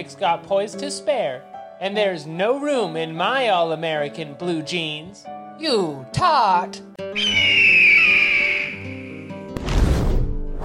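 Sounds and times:
speech: 0.0 - 7.8
eagle screech: 7.1 - 9.2.

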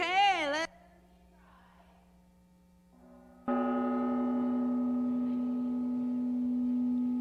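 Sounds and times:
quiet hum: 0.0 - 7.2
gong struck with a mallet: 3.0 - 7.2.

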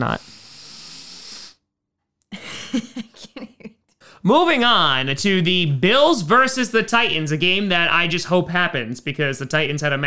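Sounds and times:
speech: 0.0 - 0.4, 4.2 - 10.0
sniffling: 0.1 - 1.6.

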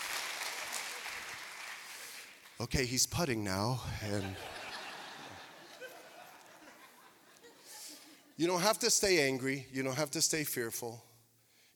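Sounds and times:
golf clap from a group: 0.0 - 2.8
speech: 2.6 - 4.6, 8.4 - 11.1
laughter: 3.9 - 8.4.

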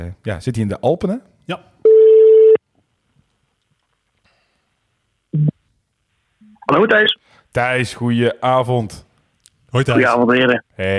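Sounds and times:
speech: 0.0 - 1.7, 5.3 - 5.5, 6.7 - 9.1, 9.7 - 10.9
telephone ringing tone: 1.9 - 2.6.

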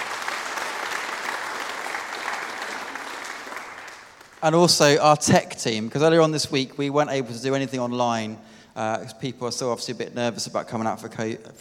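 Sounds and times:
audience applause: 0.0 - 4.8
speech: 4.4 - 11.5.

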